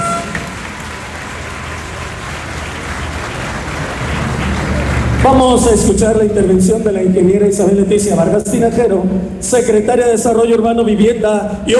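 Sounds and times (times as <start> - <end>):
crowd applause: 0.0 - 6.6
speech: 5.3 - 11.7.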